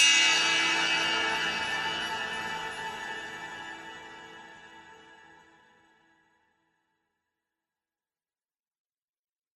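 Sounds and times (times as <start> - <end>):
bell tower bells ringing: 0.0 - 5.2.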